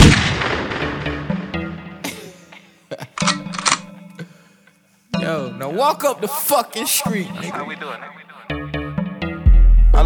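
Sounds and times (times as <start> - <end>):
gunshot: 0.0 - 1.4
sharp mechanical clicks: 3.2 - 3.9
speech: 5.3 - 8.2.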